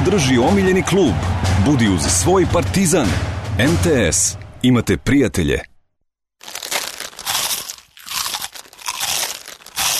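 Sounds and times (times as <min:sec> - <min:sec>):
speech: 0:00.1 - 0:05.7
crunchy bites into a hazelnut-flavoured Banini snack: 0:06.4 - 0:09.9.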